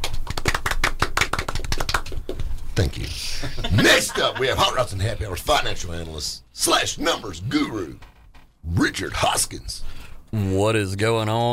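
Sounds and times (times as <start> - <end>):
golf clap: 0.0 - 2.5
speech: 2.8 - 11.5
laughter: 3.4 - 5.0.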